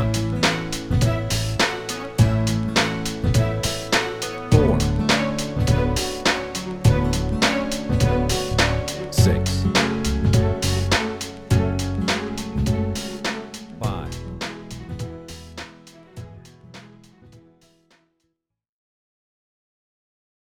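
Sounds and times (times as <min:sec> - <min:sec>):
pop chord progression: 0:00.0 - 0:15.8.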